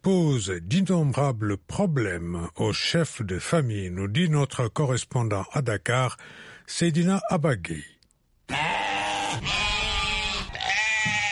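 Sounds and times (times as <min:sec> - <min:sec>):
speech: 0:00.0 - 0:08.6
sheep bleating at a livestock market: 0:08.5 - 0:11.3.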